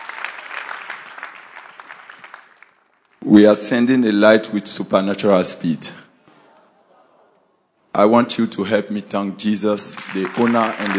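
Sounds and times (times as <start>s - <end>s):
church congregation clapping: 0.0s - 3.3s, 9.7s - 10.9s
speech: 3.2s - 6.0s, 8.0s - 10.9s.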